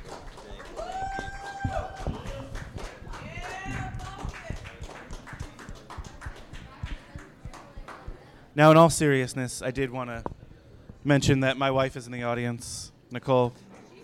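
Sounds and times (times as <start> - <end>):
audience whooping and cheering: 0.0 - 4.7
audience clapping: 0.0 - 8.1
speech: 8.6 - 10.3, 11.0 - 13.6.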